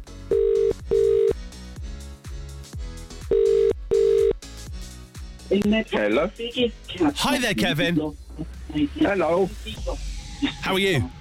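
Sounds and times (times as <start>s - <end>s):
outgoing phone call ringing: 0.3s - 1.4s, 3.3s - 4.4s
speech: 5.5s - 10.0s, 10.6s - 11.1s.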